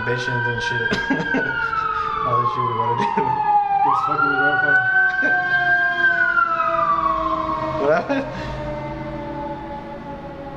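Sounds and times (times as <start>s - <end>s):
ambulance siren sound effect: 0.0s - 10.5s
speech: 0.1s - 6.1s, 7.8s - 8.6s
laughter: 0.8s - 2.2s, 3.0s - 3.4s, 5.0s - 5.7s, 7.9s - 8.4s.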